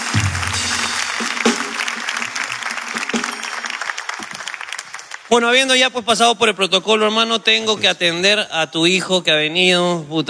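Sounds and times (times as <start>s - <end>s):
audience applause: 0.0s - 5.6s
speech: 5.3s - 10.2s.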